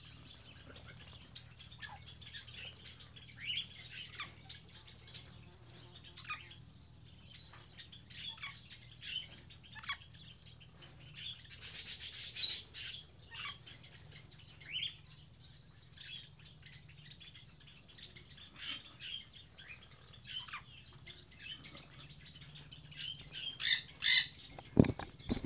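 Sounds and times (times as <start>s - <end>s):
birds chirping: 0.0s - 25.4s
rasping scratchy rustles: 24.5s - 25.4s.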